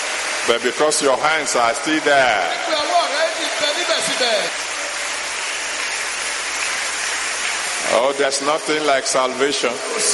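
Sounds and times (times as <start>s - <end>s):
speech: 0.5s - 4.6s, 7.9s - 10.1s
audience clapping: 2.8s - 8.4s.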